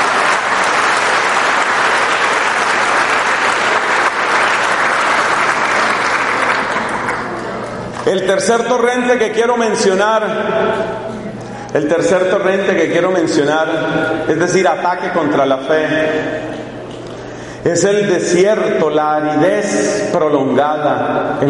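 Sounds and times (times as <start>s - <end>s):
audience applause: 0.0s - 8.0s
speech: 8.1s - 11.0s, 11.7s - 16.4s, 17.6s - 21.4s.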